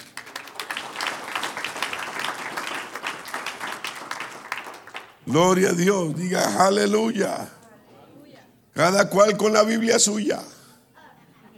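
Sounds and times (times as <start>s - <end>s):
audience applause: 0.0s - 6.2s
speech: 5.3s - 7.6s, 8.8s - 10.6s.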